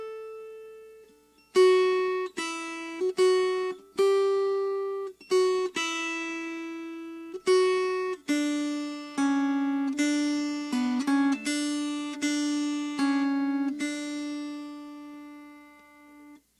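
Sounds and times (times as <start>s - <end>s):
melody: 1.3s - 16.4s.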